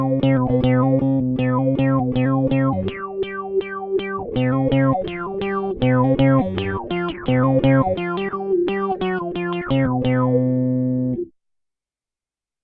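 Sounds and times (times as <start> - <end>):
guitar playing through amp simulation software: 0.0 - 11.3.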